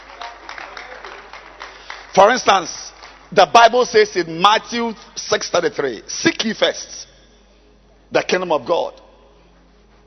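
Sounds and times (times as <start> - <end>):
audience clapping hands: 0.0 - 3.6
speech: 2.2 - 7.1, 8.1 - 9.0.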